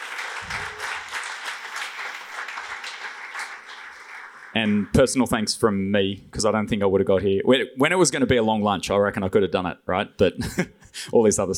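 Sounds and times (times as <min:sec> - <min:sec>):
round of applause: 0:00.0 - 0:05.0
speech: 0:04.6 - 0:11.5.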